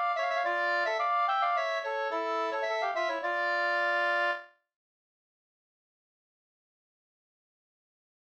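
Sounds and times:
polska folk dance tune: 0.0s - 4.5s.

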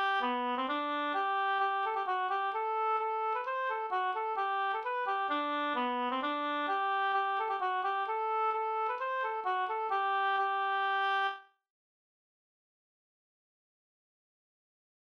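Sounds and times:
hambo polska folk dance tune: 0.0s - 11.3s.

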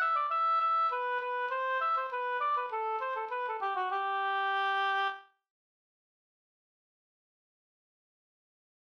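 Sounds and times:
slangpolska folk dance tune: 0.0s - 5.2s.

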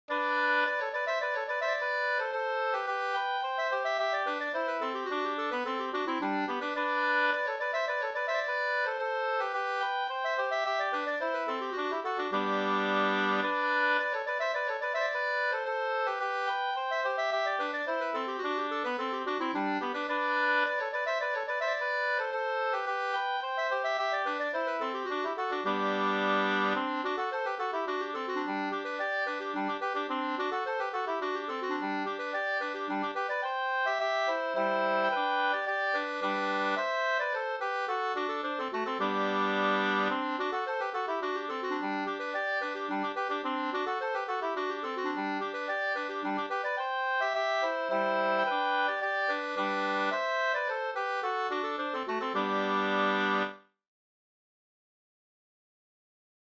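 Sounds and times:
polska in G major: 0.0s - 53.6s.

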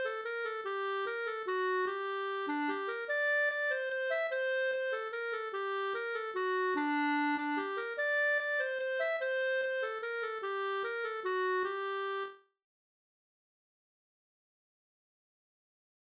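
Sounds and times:
waltz in G minor: 0.0s - 12.4s.

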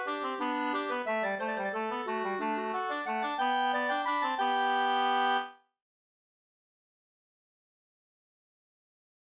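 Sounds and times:
waltz music: 0.0s - 5.5s.

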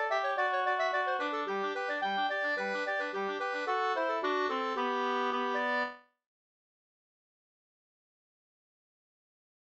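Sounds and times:
quadrille folk dance music: 0.0s - 5.9s.

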